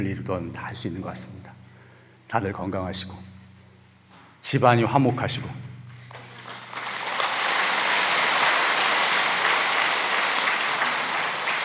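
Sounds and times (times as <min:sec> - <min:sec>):
speech: 0:00.0 - 0:01.6, 0:02.3 - 0:03.3, 0:04.4 - 0:05.7
audience applause: 0:06.1 - 0:11.6.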